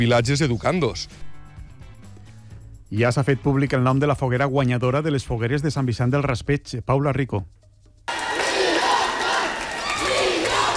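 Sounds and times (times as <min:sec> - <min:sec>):
speech: 0:00.0 - 0:01.3, 0:02.9 - 0:07.6
large crowd cheering and shouting at winner announcement: 0:08.1 - 0:10.7.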